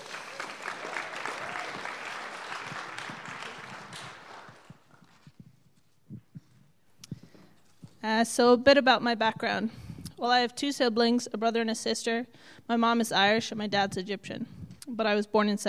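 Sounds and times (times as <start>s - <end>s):
audience applause: 0.0s - 5.3s
speech: 8.0s - 15.6s.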